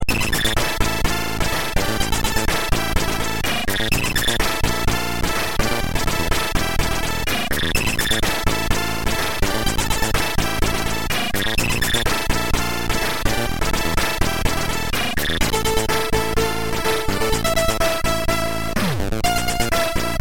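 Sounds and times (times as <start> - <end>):
Commodore 64 chiptune music: 0.0 - 20.1.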